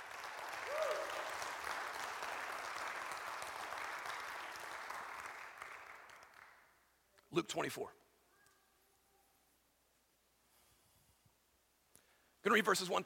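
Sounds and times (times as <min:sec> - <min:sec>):
audience applause: 0:00.0 - 0:06.6
person whooping: 0:00.6 - 0:01.3
speech: 0:07.3 - 0:08.0, 0:12.4 - 0:13.0.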